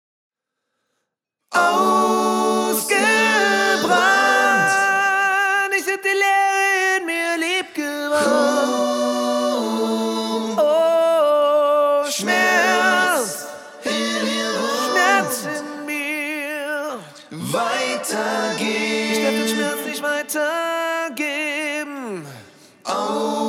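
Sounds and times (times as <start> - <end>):
a cappella singing: 1.5 - 23.4.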